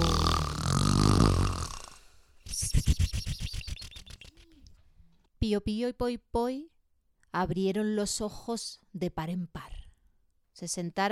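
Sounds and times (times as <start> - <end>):
voice imitating an owl's loud snore: 0.0 - 2.1
speech: 5.5 - 6.7, 7.3 - 9.7, 10.6 - 11.0.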